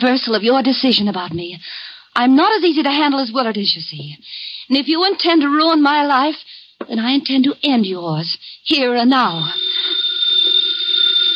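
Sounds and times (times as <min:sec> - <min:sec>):
speech: 0:00.0 - 0:10.0
telephone ringing: 0:09.2 - 0:11.3.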